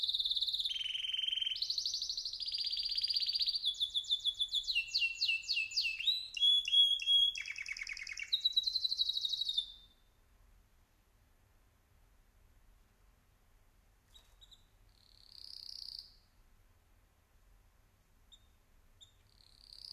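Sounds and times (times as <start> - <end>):
birds: 0.0 - 10.1, 14.1 - 16.3.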